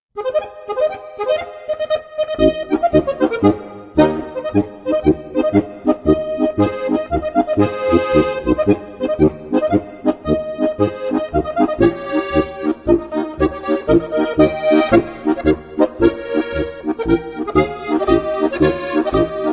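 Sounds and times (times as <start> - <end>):
polka music: 0.2 - 19.5.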